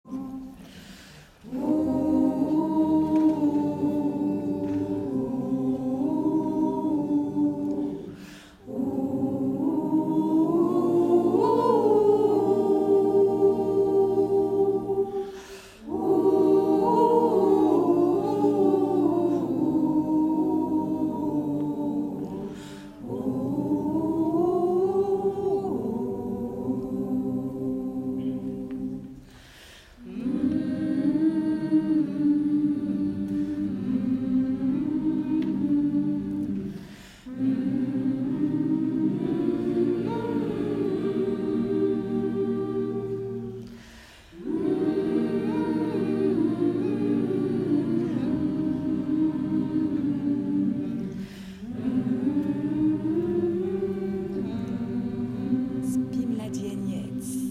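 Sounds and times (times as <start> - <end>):
choir singing Cossack lullaby: 0.0 - 57.4.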